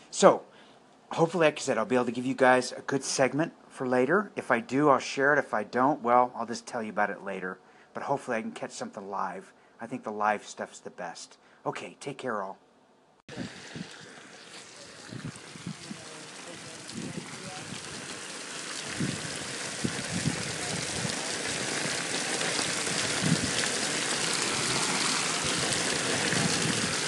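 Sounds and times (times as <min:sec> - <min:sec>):
speech: 0:00.2 - 0:00.5, 0:01.1 - 0:12.6, 0:13.3 - 0:13.9
water from an outdoor iron water feature splashing and trickling: 0:13.3 - 0:27.0.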